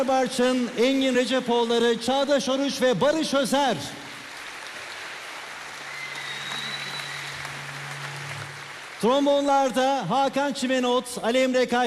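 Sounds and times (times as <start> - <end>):
audience applauding the orchestra: 0.0 - 3.2, 4.0 - 10.1
speech: 0.0 - 4.1, 9.0 - 11.8.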